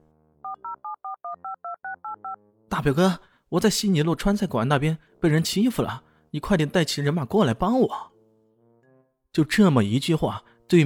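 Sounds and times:
telephone number being dialed: 0:00.4 - 0:02.4
speech: 0:00.6 - 0:08.1, 0:09.3 - 0:10.8.

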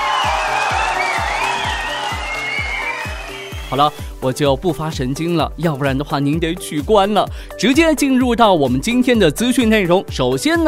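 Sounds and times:
applause: 0:00.0 - 0:04.0
cheering: 0:00.0 - 0:04.0
speech: 0:03.7 - 0:10.6.

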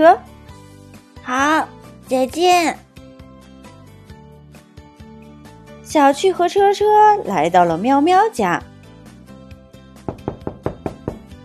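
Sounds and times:
speech: 0:00.0 - 0:00.3, 0:01.3 - 0:02.8, 0:05.9 - 0:08.7
knocking on a door: 0:10.0 - 0:11.4.

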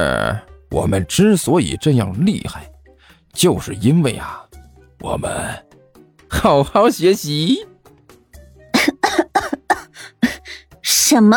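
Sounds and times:
speech: 0:00.0 - 0:02.7, 0:03.4 - 0:04.4, 0:05.0 - 0:05.7, 0:06.3 - 0:07.7, 0:11.1 - 0:11.3
harsh rapid coughing fit: 0:08.7 - 0:10.7.

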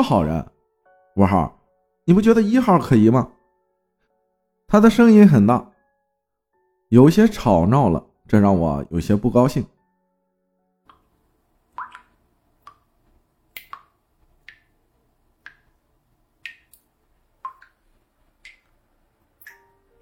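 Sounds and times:
speech: 0:00.0 - 0:00.5, 0:01.2 - 0:03.4, 0:04.7 - 0:05.7, 0:06.9 - 0:09.7
water dripping from a sink faucet in a living room: 0:10.8 - 0:20.0.

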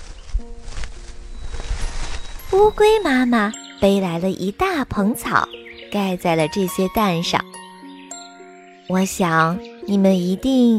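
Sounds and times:
footsteps: 0:00.0 - 0:02.8
speech: 0:02.5 - 0:07.6, 0:08.9 - 0:10.7.

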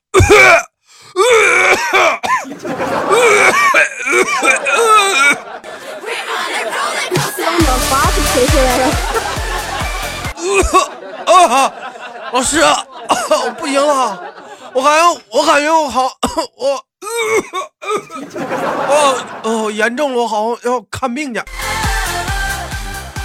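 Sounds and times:
person performing exaggerated fake coughing: 0:00.1 - 0:05.4, 0:10.4 - 0:11.0, 0:13.1 - 0:13.6, 0:15.9 - 0:18.3
laughter: 0:02.4 - 0:15.5, 0:18.1 - 0:19.8
speech: 0:11.5 - 0:21.8.

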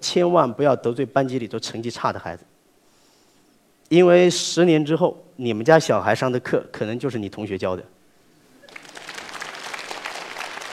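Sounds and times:
speech: 0:00.0 - 0:02.5, 0:03.9 - 0:08.0
audience applause: 0:08.6 - 0:10.7.

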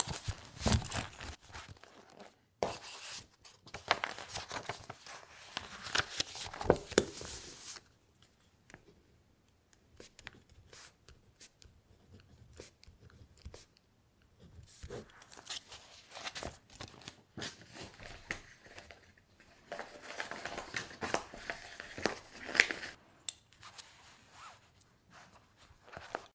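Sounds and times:
page handling: 0:00.0 - 0:07.9, 0:14.8 - 0:23.0, 0:25.2 - 0:26.3
paper rustling: 0:00.0 - 0:07.9, 0:14.7 - 0:23.0
writing strokes on paper: 0:10.0 - 0:15.1.

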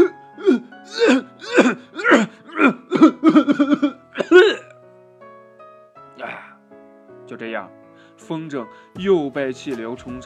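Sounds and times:
narrator loudly imitating a fit of coughing: 0:00.0 - 0:04.7
speech: 0:08.3 - 0:10.2.

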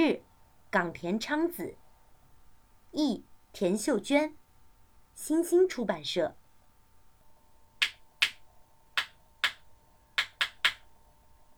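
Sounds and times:
speech: 0:00.0 - 0:01.8, 0:02.9 - 0:04.4, 0:05.2 - 0:06.4
small hammer tapping on a shoe: 0:09.0 - 0:09.6, 0:10.2 - 0:10.8.

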